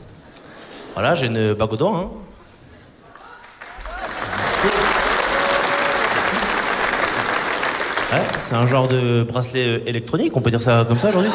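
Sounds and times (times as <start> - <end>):
speech: 1.0 - 2.3, 8.1 - 11.3
audience applause at a stand-up comedy show: 3.0 - 9.0.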